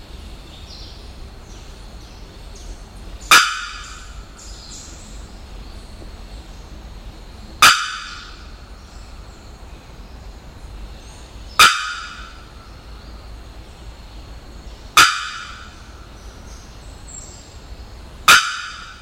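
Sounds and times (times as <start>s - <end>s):
Bearded Bellbird calling: 3.2s - 5.2s, 7.6s - 9.2s, 11.6s - 13.0s, 15.0s - 16.6s, 18.3s - 19.0s.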